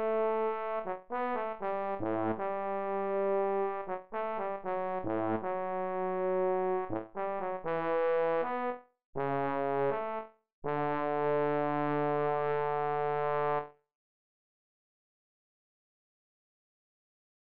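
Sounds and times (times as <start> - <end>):
trombone: 0.0 - 13.6
bassoon: 0.0 - 13.7.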